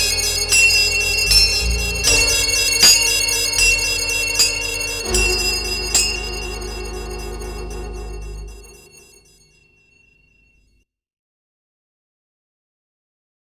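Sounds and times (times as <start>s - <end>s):
backing track: 0.0s - 9.5s.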